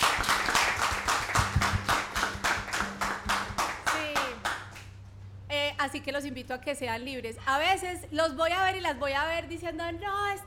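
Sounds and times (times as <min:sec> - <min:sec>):
audience applause: 0:00.0 - 0:04.8
speech: 0:05.8 - 0:10.4.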